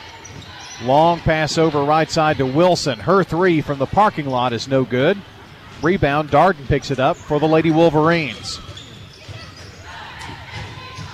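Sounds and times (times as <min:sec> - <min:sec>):
faint crowd murmur: 0:00.0 - 0:11.1
speech: 0:00.8 - 0:08.7
basketball dribbled in the backcourt during a women's game: 0:08.1 - 0:11.1.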